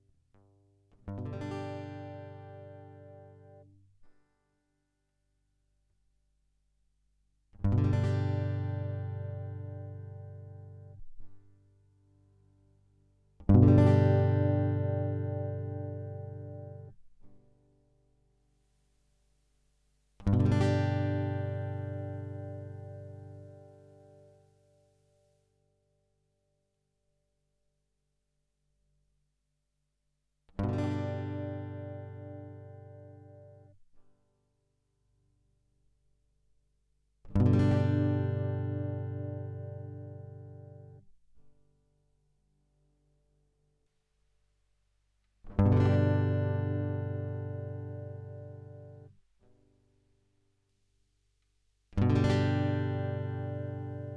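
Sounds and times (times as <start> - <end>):
equalised guitar: 0.0 - 4.2, 7.6 - 18.1, 20.2 - 25.0, 30.5 - 34.1, 37.2 - 41.8, 45.4 - 49.9, 51.9 - 54.1.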